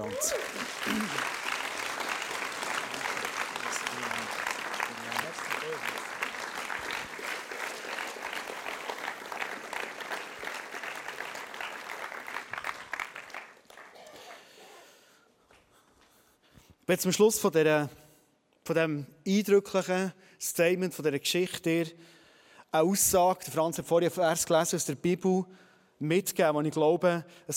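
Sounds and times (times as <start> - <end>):
speech: 0.0 - 1.3, 16.9 - 18.0, 18.7 - 27.5
audience applause: 0.0 - 15.0.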